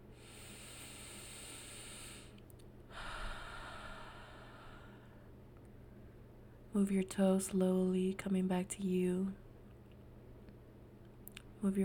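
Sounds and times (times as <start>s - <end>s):
slow deep breath during a guided meditation: 0.0s - 6.6s
speech: 6.8s - 9.4s, 11.6s - 11.8s.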